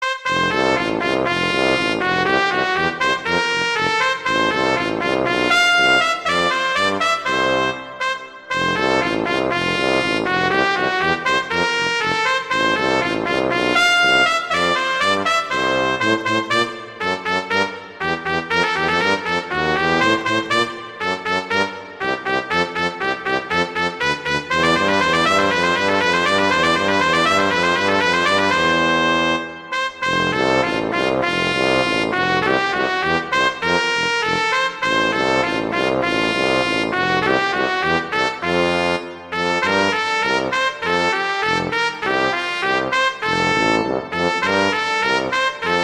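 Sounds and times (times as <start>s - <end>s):
horn duet: 0.0s - 45.8s.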